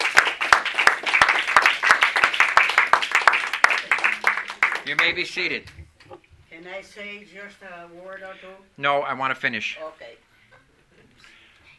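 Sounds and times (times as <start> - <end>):
audience clapping: 0.0 - 5.7
speech: 4.9 - 5.8, 6.6 - 10.3.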